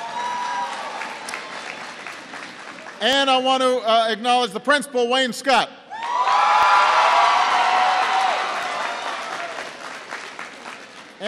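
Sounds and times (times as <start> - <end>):
audience applause: 0.0 - 3.0, 6.0 - 11.2
speech: 3.0 - 5.8.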